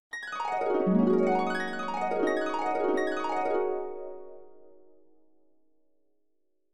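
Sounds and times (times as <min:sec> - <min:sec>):
dreamy harp: 0:00.2 - 0:05.1.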